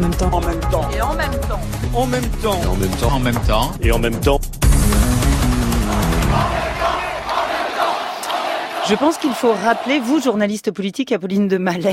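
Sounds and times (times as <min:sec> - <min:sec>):
speech: 0:00.1 - 0:04.6, 0:08.9 - 0:11.9
rally crowd chanting a slogan: 0:05.9 - 0:10.4.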